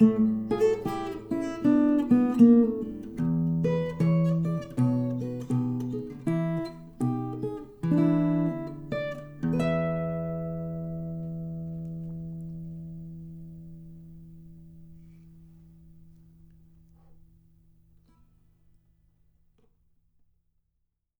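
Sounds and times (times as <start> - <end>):
blues music: 0.0 - 14.6.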